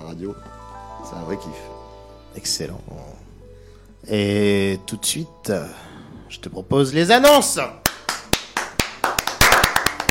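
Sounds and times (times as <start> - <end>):
speech: 0.2 - 3.3, 4.0 - 7.8
single person clapping hands in a radio studio: 7.8 - 10.0.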